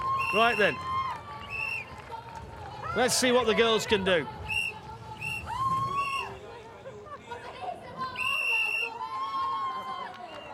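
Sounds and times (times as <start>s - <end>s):
crowd shrieking and whistling: 0.0s - 1.9s, 4.4s - 6.5s, 8.1s - 10.5s
speech: 0.3s - 0.9s, 2.9s - 4.4s.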